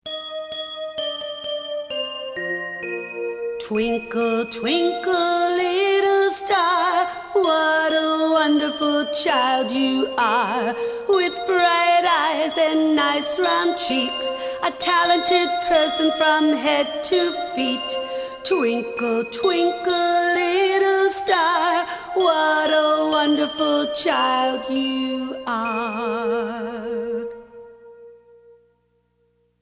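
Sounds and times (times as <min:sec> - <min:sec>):
nursery rhyme melody: 0:00.0 - 0:28.6.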